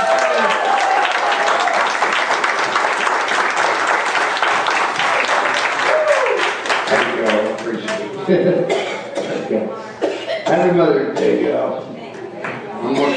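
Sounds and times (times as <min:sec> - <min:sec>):
audience applause: 0:00.0 - 0:08.2
speech: 0:08.3 - 0:08.8, 0:09.5 - 0:09.9, 0:10.5 - 0:11.9.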